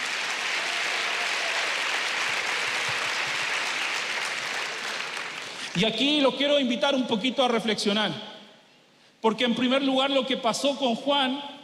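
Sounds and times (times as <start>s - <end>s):
audience applause: 0.0s - 5.8s
speech: 5.8s - 8.3s, 9.2s - 11.6s.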